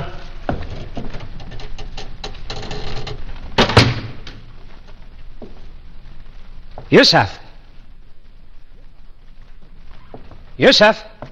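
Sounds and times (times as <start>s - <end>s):
door closing: 0.0s - 4.4s
speech: 6.9s - 7.4s, 10.6s - 11.1s.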